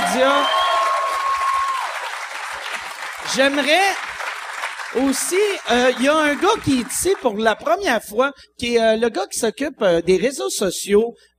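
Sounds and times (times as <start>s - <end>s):
audience applause: 0.0s - 7.5s
speech: 0.2s - 0.6s, 3.3s - 4.1s, 4.9s - 11.3s.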